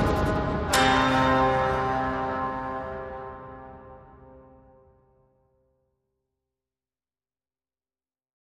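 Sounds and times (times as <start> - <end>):
music without drums or bass: 0.0 - 6.0.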